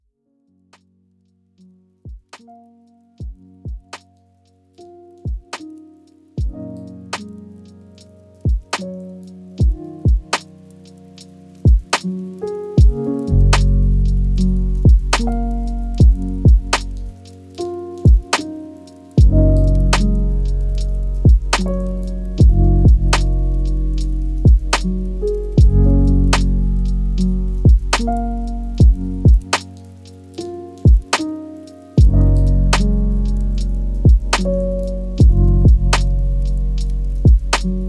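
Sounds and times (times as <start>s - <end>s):
lofi hip hop: 9.6s - 37.8s.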